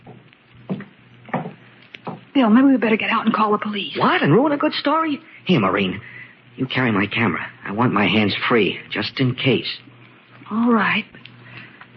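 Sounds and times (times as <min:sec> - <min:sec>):
dull footsteps from upstairs: 0:00.0 - 0:02.3
hiss: 0:00.0 - 0:11.9
speech: 0:02.4 - 0:09.9, 0:10.5 - 0:11.2.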